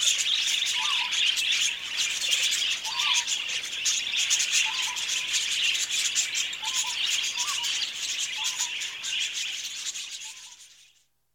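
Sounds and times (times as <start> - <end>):
budgerigar flock chatter: 0.0 - 10.7.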